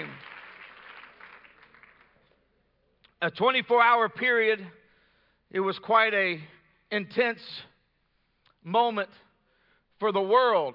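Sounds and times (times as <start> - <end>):
audience clapping hands: 0.0 - 2.4
speech: 3.2 - 4.8, 5.5 - 7.7, 8.6 - 9.2, 10.0 - 10.7.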